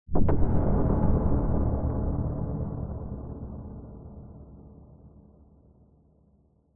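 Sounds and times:
dark tense cinematic hit with reverb: 0.1s - 5.3s.

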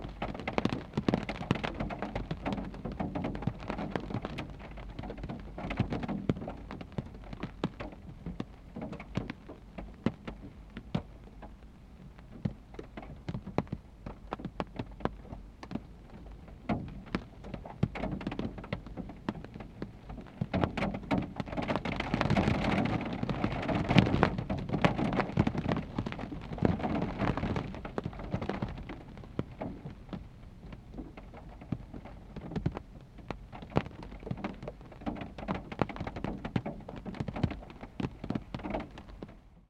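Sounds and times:
rain on a parked car windshield: 0.0s - 39.6s.

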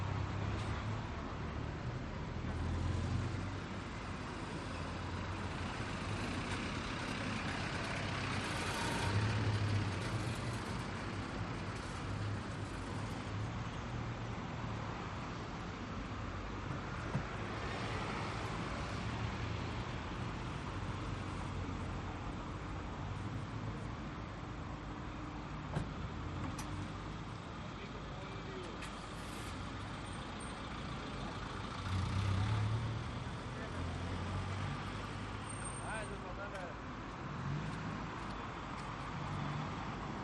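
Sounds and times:
cars pulling in and away outside a hotel in Doha Qatar at night: 0.0s - 40.2s.

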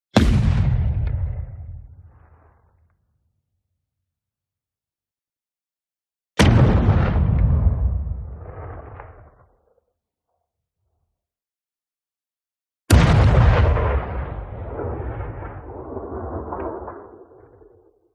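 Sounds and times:
distant light artillery fire: 0.2s - 3.2s, 6.4s - 9.8s, 12.9s - 18.0s.

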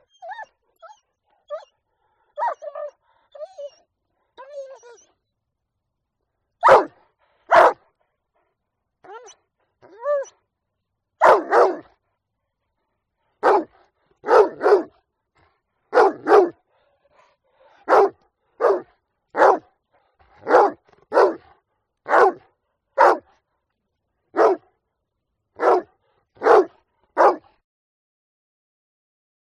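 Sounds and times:
dog giving sharp short barks: 6.6s - 7.8s, 11.2s - 11.9s, 13.4s - 14.9s, 15.9s - 16.6s, 17.7s - 19.7s, 20.4s - 21.5s, 22.1s - 23.3s, 24.3s - 24.7s, 25.6s - 27.5s.

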